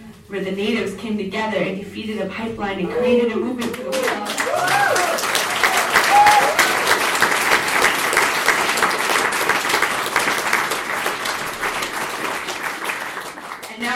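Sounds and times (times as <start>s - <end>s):
speech: 0.3s - 5.2s
audience applause: 3.6s - 13.9s.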